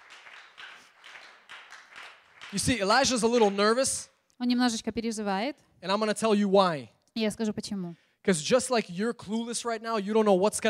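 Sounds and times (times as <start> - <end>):
audience round of applause: 0.0 - 3.6
speech: 2.5 - 10.6.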